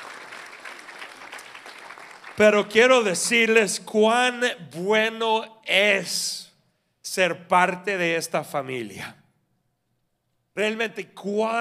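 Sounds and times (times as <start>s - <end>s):
audience applause: 0.0s - 3.0s
speech: 2.4s - 6.5s, 7.1s - 9.2s, 10.6s - 11.5s.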